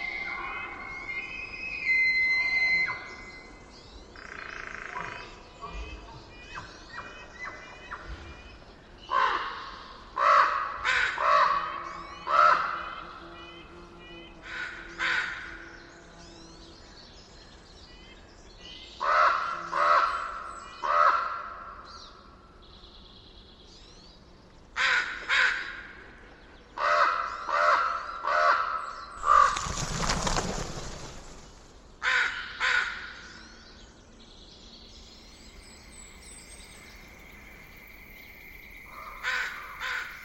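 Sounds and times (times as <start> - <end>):
whistling bird notes: 0.0 - 3.6
crow-like caws: 9.1 - 12.7, 14.4 - 15.7, 19.0 - 21.8, 24.8 - 26.0, 26.8 - 29.7, 32.0 - 33.4, 38.9 - 40.2.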